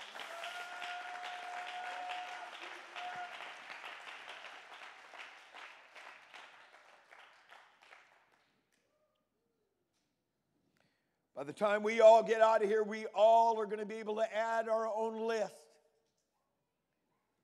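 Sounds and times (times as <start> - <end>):
audience clapping hands: 0.0 - 8.6
speech: 11.4 - 15.6.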